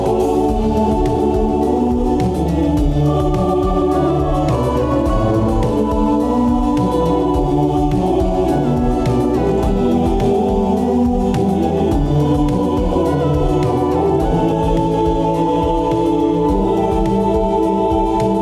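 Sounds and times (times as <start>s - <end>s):
SATB choir singing: 0.0s - 18.3s.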